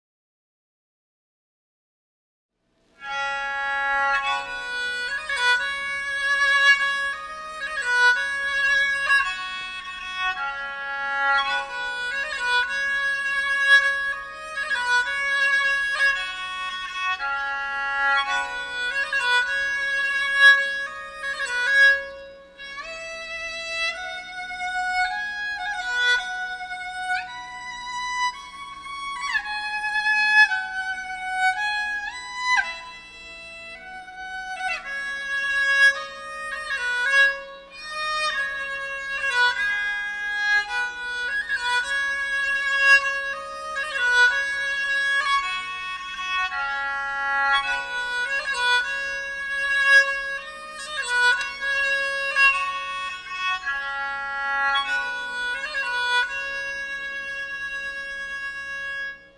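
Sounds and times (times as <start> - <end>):
kokyū bowed lute: 3.0 - 59.3.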